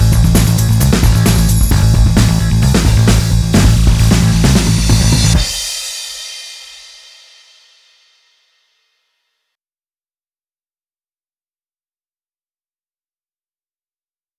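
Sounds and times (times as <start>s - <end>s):
cheerful music: 0.0s - 5.7s.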